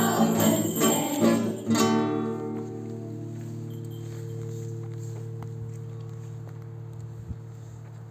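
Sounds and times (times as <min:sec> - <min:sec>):
Christmas song: 0:00.0 - 0:05.4.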